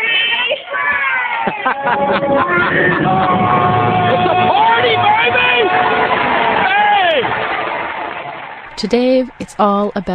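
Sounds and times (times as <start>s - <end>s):
laughter: 0.0s - 7.9s
group of friends yelling loudly: 0.0s - 8.6s
speech: 1.5s - 5.5s, 8.8s - 10.1s.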